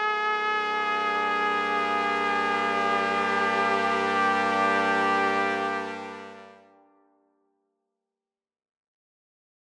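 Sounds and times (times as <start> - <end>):
trumpet melody: 0.2 - 6.8.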